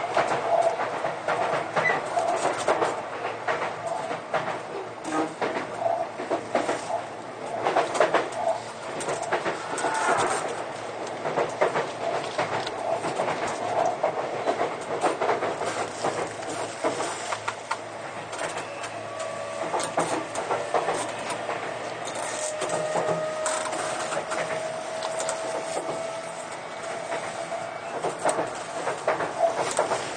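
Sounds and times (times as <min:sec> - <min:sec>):
Sotetsu 20000 series train wheels rumbling on rails: 0:00.0 - 0:30.1.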